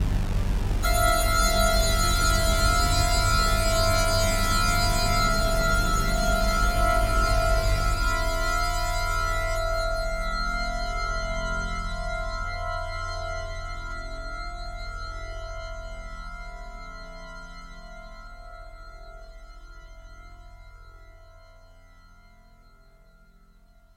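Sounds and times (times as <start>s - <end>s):
musical stinger: 0.0s - 14.3s.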